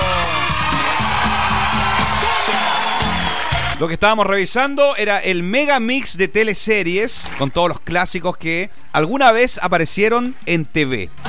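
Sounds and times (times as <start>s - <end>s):
applause and cheering: 0.0s - 3.8s
speech: 3.8s - 11.2s.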